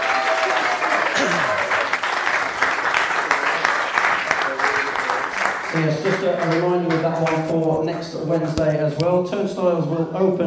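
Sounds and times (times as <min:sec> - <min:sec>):
crowd applause: 0:00.0 - 0:07.4
speech: 0:05.7 - 0:10.4.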